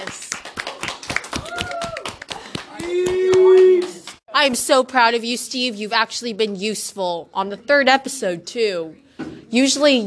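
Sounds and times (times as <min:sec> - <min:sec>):
audience applause: 0:00.0 - 0:04.1
speech: 0:04.4 - 0:10.0.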